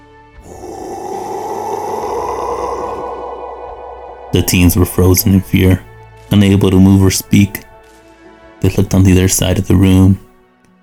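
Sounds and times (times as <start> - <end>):
guttural creature roar: 0.4 - 5.4
speech: 4.4 - 7.6, 8.6 - 10.2.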